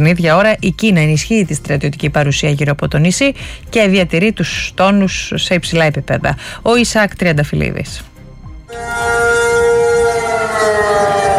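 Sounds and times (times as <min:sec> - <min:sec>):
speech: 0:00.0 - 0:08.1
air raid siren in Taiwan: 0:08.7 - 0:11.3.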